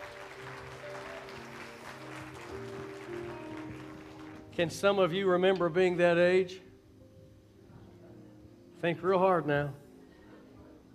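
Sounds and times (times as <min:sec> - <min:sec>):
applause: 0:00.0 - 0:04.8
speech: 0:04.6 - 0:06.6, 0:08.8 - 0:09.8.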